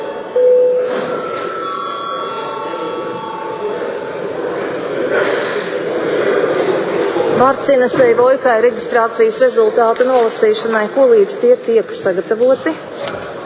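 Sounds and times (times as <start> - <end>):
electric bell rung to call members to session: 0.0 - 4.8
murmur of voices and room bustle: 0.0 - 13.4
speech: 7.4 - 13.2.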